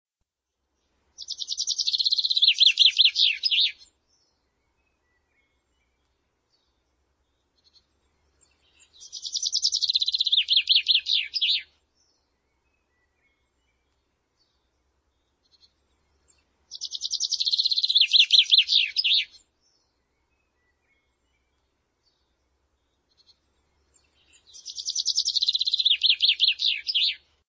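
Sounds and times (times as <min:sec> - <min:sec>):
buzzy bird trill with looping notes: 0:01.2 - 0:03.8, 0:08.8 - 0:11.6, 0:16.7 - 0:19.3, 0:24.4 - 0:27.2.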